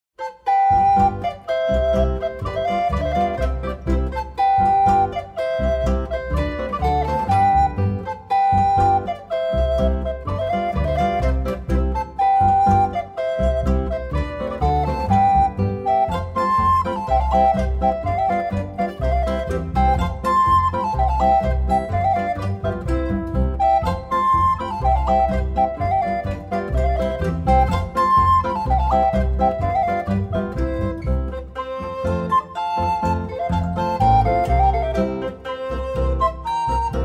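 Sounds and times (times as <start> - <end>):
woodwind quartet playing a polka: 0.2 - 37.0.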